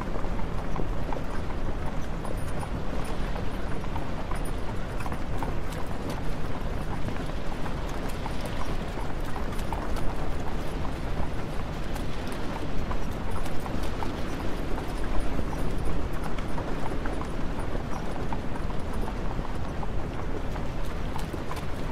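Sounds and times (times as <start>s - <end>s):
horse hooves clopping: 0.0s - 21.8s.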